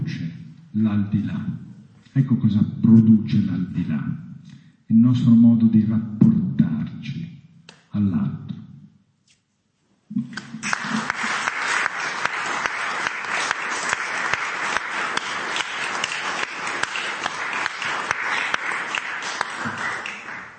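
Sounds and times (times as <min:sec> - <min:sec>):
speech: 0:00.8 - 0:06.6, 0:08.0 - 0:08.5
audience applause: 0:10.4 - 0:20.5.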